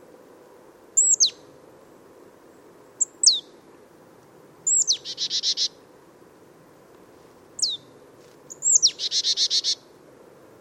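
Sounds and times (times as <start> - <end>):
marsh tit calling: 1.0 - 1.5, 3.0 - 3.6, 4.6 - 5.8, 7.6 - 9.9.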